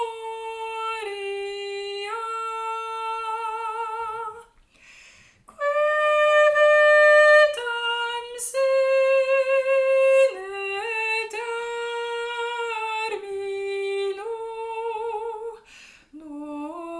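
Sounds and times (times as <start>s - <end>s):
soprano singing a hymn: 0.0s - 4.6s, 5.4s - 16.9s.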